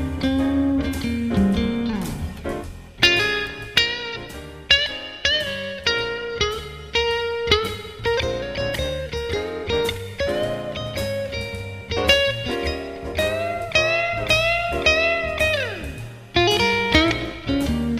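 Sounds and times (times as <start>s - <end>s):
clean blues electric guitar with P90 pickups: 0.0s - 17.9s.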